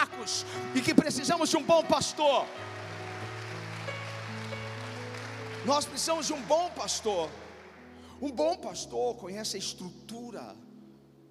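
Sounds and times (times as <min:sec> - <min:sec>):
audience applauding: 0:00.0 - 0:08.0
speech: 0:00.2 - 0:02.8, 0:05.6 - 0:07.4, 0:08.2 - 0:10.7.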